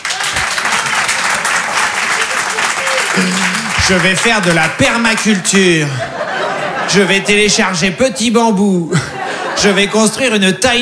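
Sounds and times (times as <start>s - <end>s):
audience applause: 0.0s - 7.8s
laughter: 0.0s - 10.8s
speech: 3.2s - 6.3s, 6.9s - 10.8s.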